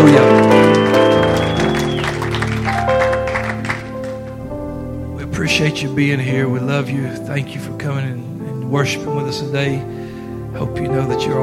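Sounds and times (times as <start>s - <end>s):
church congregation applauding to welcome visitors: 0.0s - 4.6s
sustained musical tones: 0.0s - 11.4s
speech: 5.9s - 11.4s.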